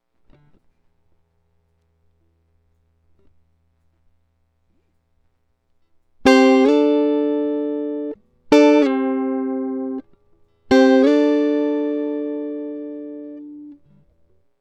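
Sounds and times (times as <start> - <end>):
electric guitar: 6.3 - 10.1, 10.7 - 14.0.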